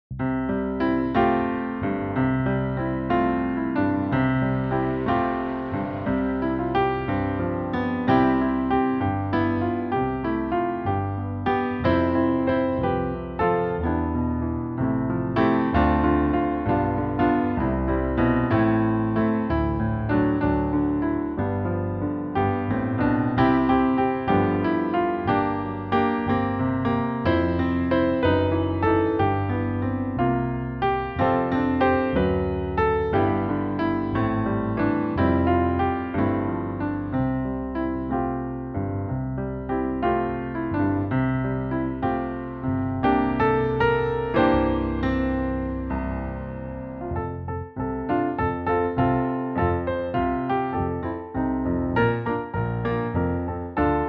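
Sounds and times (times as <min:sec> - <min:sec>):
Christmas piano music: 0:00.0 - 0:54.0.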